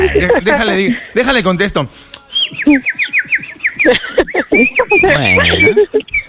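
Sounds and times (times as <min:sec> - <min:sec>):
laughter: 0:00.0 - 0:01.3, 0:02.5 - 0:06.2
speech: 0:00.1 - 0:06.2
bird chirping and whistling: 0:02.3 - 0:06.2.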